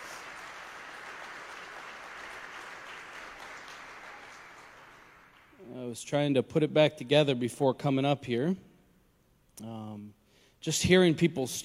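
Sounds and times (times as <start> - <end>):
audience applause: 0.0 - 5.6
speech: 5.7 - 8.7, 9.6 - 11.6.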